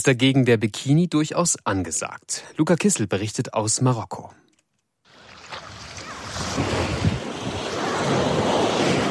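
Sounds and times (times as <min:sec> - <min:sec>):
speech: 0:00.0 - 0:04.5
ocean waves rolling onto a beach: 0:05.1 - 0:09.0
wind rumble against the microphone: 0:05.7 - 0:09.0.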